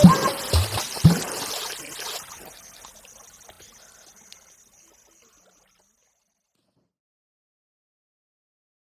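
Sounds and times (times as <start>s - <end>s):
water drum beat: 0.0s - 3.6s.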